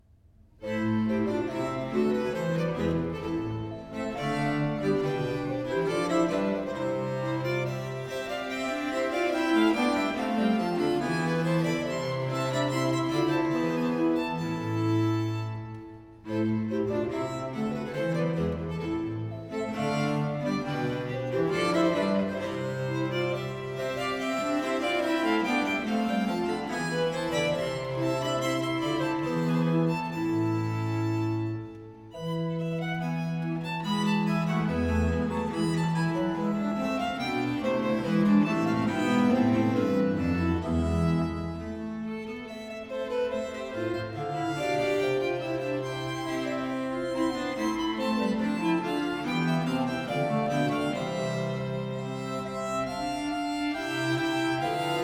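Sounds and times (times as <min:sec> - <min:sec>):
viol consort playing an air in A minor: 0:00.6 - 0:55.0.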